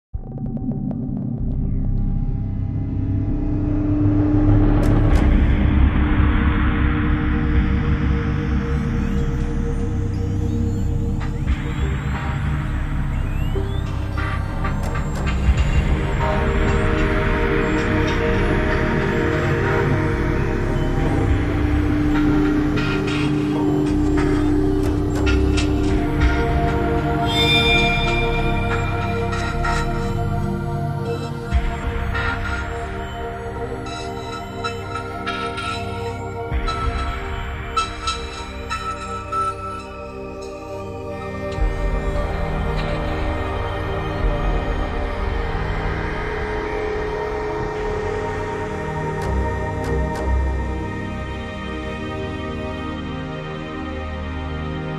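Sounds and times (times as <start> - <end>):
creepy ambient sound: 0.2 - 54.9.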